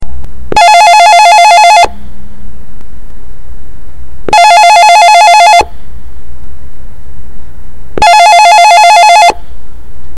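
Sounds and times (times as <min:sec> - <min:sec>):
Panasonic business phone: 0:00.5 - 0:02.0, 0:04.3 - 0:05.7, 0:08.0 - 0:09.4.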